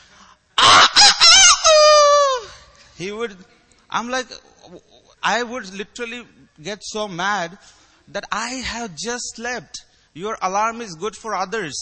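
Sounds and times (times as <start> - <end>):
rooster crowing: 0.6 - 2.6
speech: 3.0 - 11.8.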